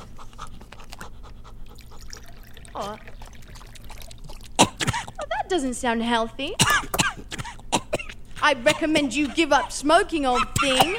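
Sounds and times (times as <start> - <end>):
low steady hum: 0.0 - 10.9
still water poured for a dog: 1.8 - 4.6
speech: 2.8 - 3.1, 5.5 - 7.3, 8.4 - 10.9.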